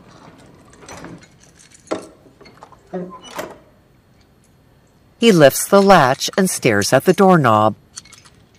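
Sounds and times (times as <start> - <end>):
key twisting to unlock a padlock: 0.4 - 2.2, 7.9 - 8.5
speech: 2.9 - 3.3, 5.2 - 7.8.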